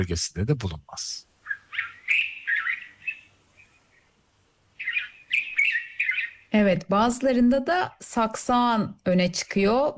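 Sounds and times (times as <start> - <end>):
speech: 0.0 - 1.3, 6.5 - 9.9
white-spectacled bulbul call: 1.4 - 4.1, 4.7 - 6.6.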